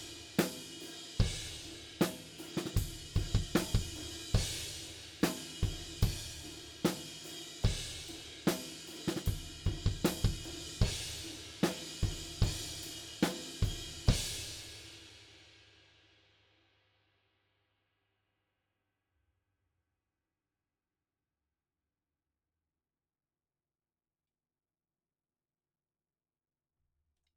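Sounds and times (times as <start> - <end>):
drums: 0.0 - 16.0.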